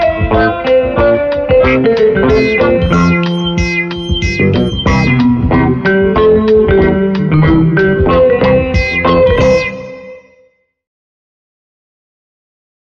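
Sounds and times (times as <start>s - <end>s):
hoppity hip twangy music: 0.0s - 10.2s.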